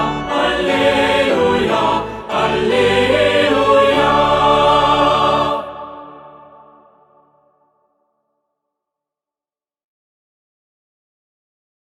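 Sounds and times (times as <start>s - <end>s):
alleluia singing: 0.0s - 7.6s.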